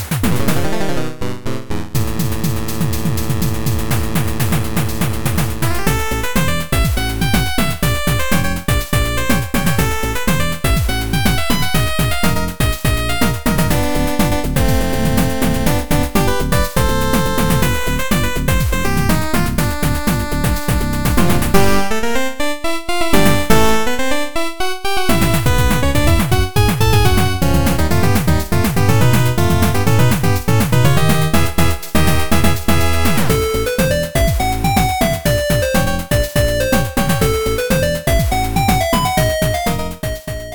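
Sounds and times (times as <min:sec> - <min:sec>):
battle music: 0:00.2 - 0:40.5.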